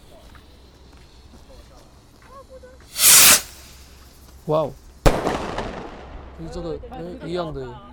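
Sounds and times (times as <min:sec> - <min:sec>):
small firework rocket launching and bursting: 0:02.9 - 0:04.2, 0:05.1 - 0:06.1
speech: 0:04.5 - 0:04.8, 0:06.4 - 0:07.9.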